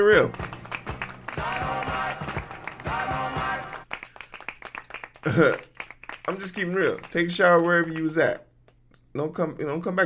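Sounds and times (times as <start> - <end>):
speech: 0.0 - 0.5, 5.2 - 5.6, 6.3 - 8.5, 9.2 - 10.0
clapping sound effect: 0.1 - 8.2.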